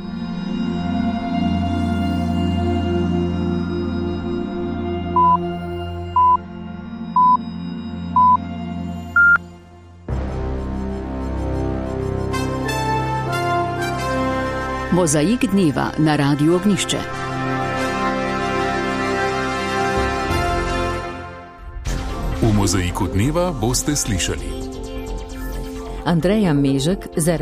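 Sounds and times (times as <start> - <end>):
quiet music: 0.0 - 27.4
radio time signal beeps: 5.2 - 5.5, 6.2 - 6.4, 7.2 - 7.4, 8.1 - 8.4, 9.1 - 9.4
speech: 15.0 - 17.4, 22.6 - 24.7, 26.1 - 27.4.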